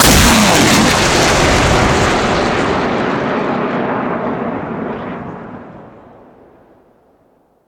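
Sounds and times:
Grad BM-21 multiple rocket launcher firing: 0.0s - 5.8s.

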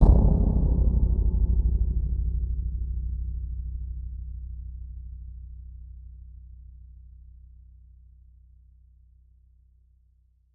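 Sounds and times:
eerie tense hit: 0.0s - 3.4s.

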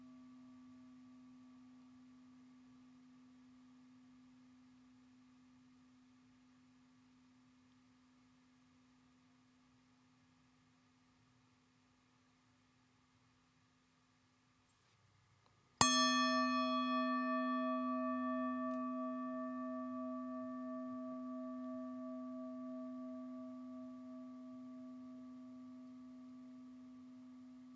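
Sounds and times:
singing bowl: 0.0s - 5.1s, 15.8s - 27.7s.

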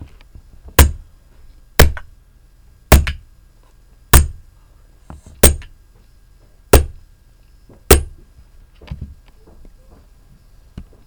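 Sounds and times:
hammering: 0.8s - 1.0s, 1.8s - 2.1s, 2.9s - 3.2s, 4.1s - 4.4s, 5.4s - 5.7s, 6.7s - 7.0s, 7.9s - 8.2s.

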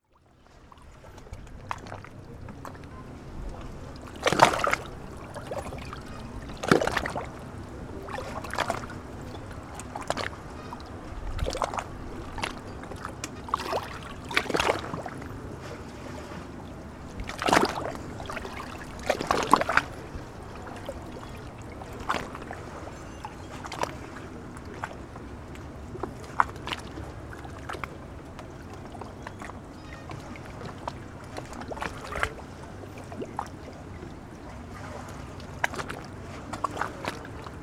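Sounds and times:
waves at the edge of the Bosphorus: 0.3s - 37.6s.

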